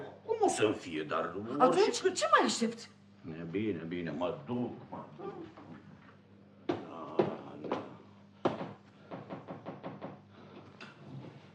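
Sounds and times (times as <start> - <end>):
speech: 0.5 - 5.6
knocking on a door: 6.7 - 10.3.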